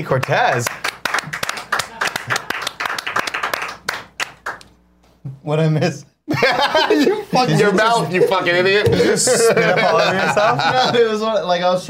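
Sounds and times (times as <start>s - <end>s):
speech: 0.0s - 0.9s, 5.5s - 11.8s
hand clapping: 0.0s - 4.8s
laughter: 6.3s - 11.4s.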